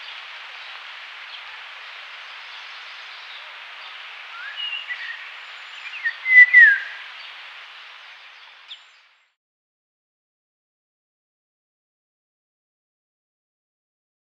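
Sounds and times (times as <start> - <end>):
Indian golden oriole fluty whistled song: 0.0 - 7.4.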